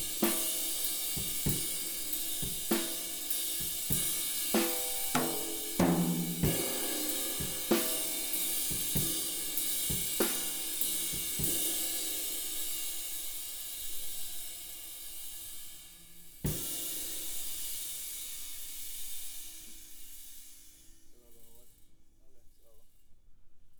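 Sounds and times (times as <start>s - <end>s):
drum kit: 0.0s - 21.6s.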